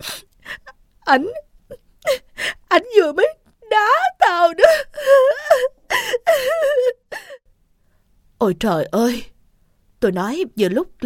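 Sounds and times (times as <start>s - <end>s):
woman sobbing: 0.0s - 2.8s, 3.7s - 7.4s
speech: 1.1s - 1.8s, 2.8s - 5.7s, 8.4s - 9.3s, 10.0s - 11.0s.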